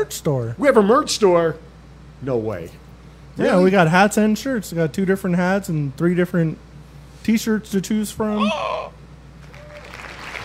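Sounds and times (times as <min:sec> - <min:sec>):
speech: 0:00.0 - 0:02.8, 0:03.4 - 0:08.9
applause sound effect: 0:09.4 - 0:10.4.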